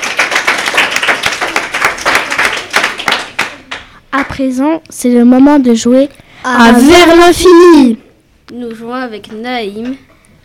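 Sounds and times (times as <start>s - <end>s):
group applauding: 0.0s - 4.4s
speech: 4.1s - 10.1s.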